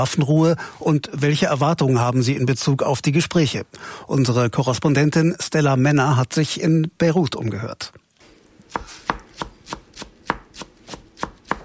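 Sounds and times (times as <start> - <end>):
speech: 0.0 - 8.0
chef's knife chopping herbs for chicken marinade in a Beirut restaurant kitchen: 8.7 - 11.6.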